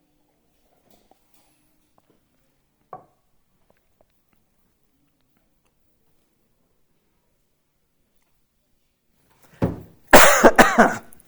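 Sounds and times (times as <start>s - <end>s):
person clearing throat: 10.2s - 11.2s
person coughing: 10.2s - 11.2s.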